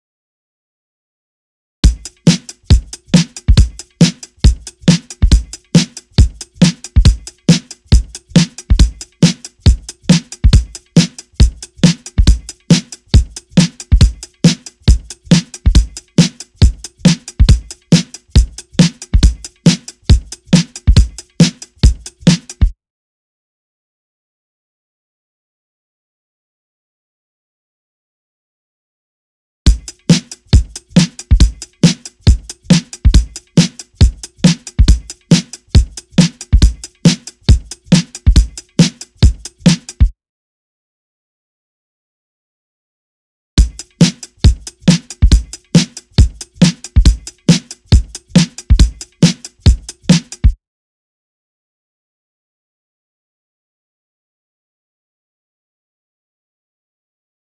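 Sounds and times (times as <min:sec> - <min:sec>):
drums: 0:01.8 - 0:22.7, 0:29.7 - 0:40.1, 0:43.6 - 0:50.6.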